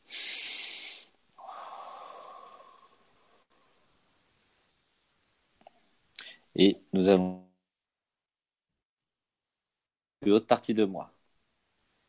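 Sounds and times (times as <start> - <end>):
deep breath: 0.0 - 4.0
speech: 6.6 - 7.4, 10.3 - 11.2.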